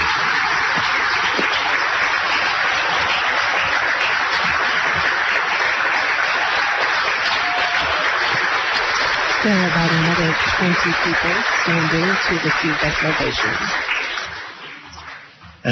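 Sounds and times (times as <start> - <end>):
crowd clapping: 0.0 - 15.7
speech: 9.5 - 13.9.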